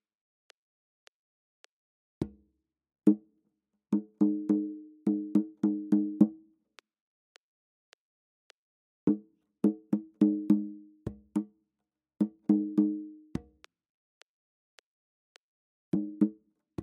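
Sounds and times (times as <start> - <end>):
African rhythms at 105 bpm: 4.0 - 6.4, 9.1 - 11.5, 12.2 - 13.2.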